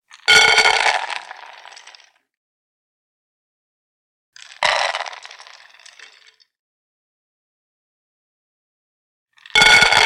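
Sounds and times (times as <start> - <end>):
frozen peas poured into pot: 0.7 - 2.2, 4.4 - 6.4.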